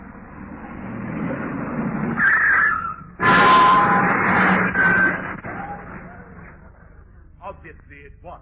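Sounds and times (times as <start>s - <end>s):
car driving up: 0.0s - 7.1s
speech: 8.0s - 8.4s.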